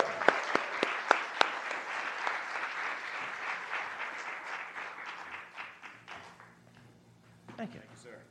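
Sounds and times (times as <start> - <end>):
audience applause welcoming a speaker at a community gathering: 0.0 - 6.6.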